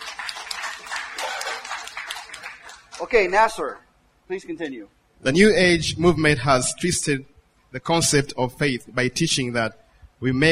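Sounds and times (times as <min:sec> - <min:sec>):
church congregation clapping hands for the Lord: 0:00.0 - 0:03.5
speech: 0:03.0 - 0:10.5.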